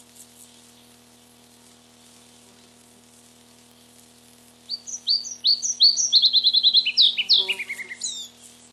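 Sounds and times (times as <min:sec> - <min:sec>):
electrical hum: 0:00.0 - 0:08.7
red-breasted flycatcher singing: 0:04.7 - 0:08.7.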